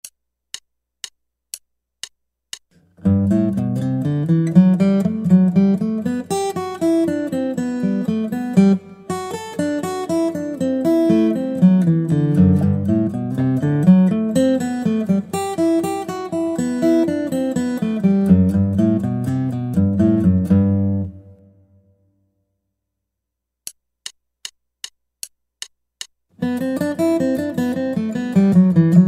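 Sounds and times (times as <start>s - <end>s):
guitar: 2.8s - 22.0s, 26.4s - 29.0s.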